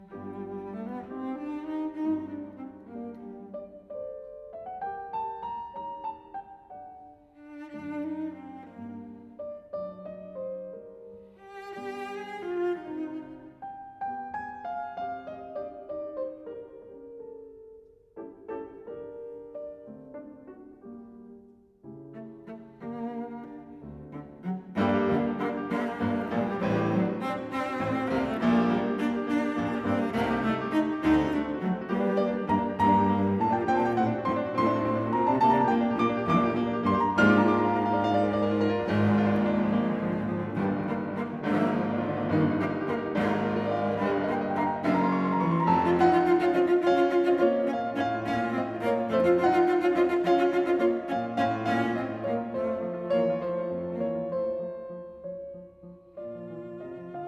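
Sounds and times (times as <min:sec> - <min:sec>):
cello and piano sonata in G minor: 0:00.0 - 0:57.2.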